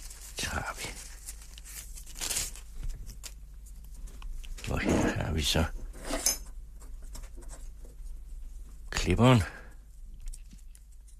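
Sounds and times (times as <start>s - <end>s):
tissue paper crinkling around a small wrapped item: 0.0s - 4.2s
speech: 4.7s - 5.8s, 9.0s - 9.6s.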